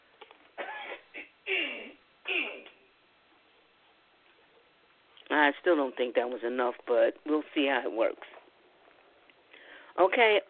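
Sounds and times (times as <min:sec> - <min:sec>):
throat clearing: 0:00.6 - 0:02.8
speech: 0:05.4 - 0:08.4, 0:10.0 - 0:10.4.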